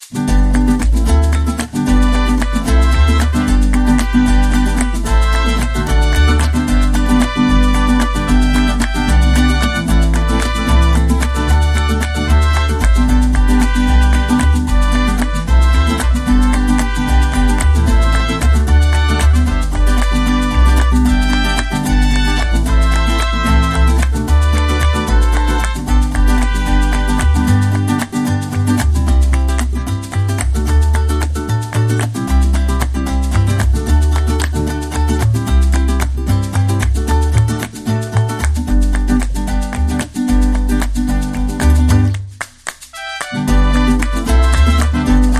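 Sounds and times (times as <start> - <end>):
mariachi music: 0.0 - 45.3.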